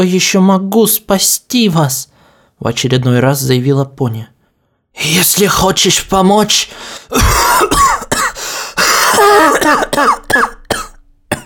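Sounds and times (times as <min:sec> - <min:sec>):
speech: 0:00.0 - 0:04.4, 0:05.0 - 0:08.0, 0:09.2 - 0:10.6
man coughing harshly: 0:07.1 - 0:11.4.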